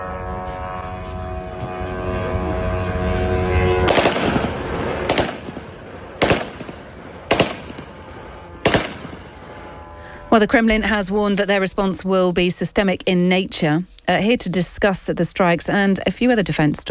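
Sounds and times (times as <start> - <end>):
drone buzzing: 0.0 - 12.2
rough rumble: 0.3 - 16.8
rifle shots fired at a drone: 3.9 - 9.7
speech: 10.4 - 16.8.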